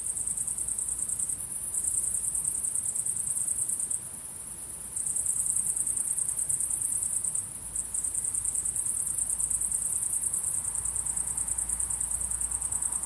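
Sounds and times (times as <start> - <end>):
shrill crickets chirping: 0.0 - 13.0.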